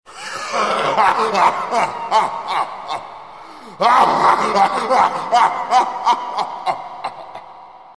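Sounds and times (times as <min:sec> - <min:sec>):
person laughing: 0:00.5 - 0:03.1, 0:04.1 - 0:07.6.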